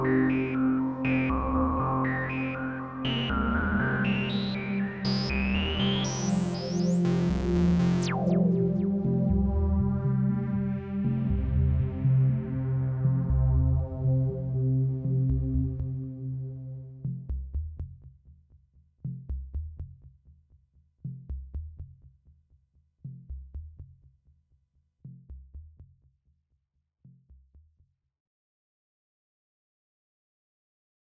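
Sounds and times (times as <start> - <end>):
analogue synthesizer filter resonance: 0.0 - 17.1.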